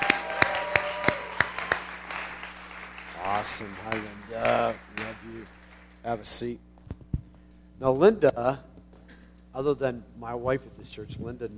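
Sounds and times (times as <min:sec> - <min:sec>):
church congregation applauding a welcomed guest: 0:00.0 - 0:06.4
speech: 0:03.4 - 0:06.7, 0:07.8 - 0:08.7, 0:09.5 - 0:11.5.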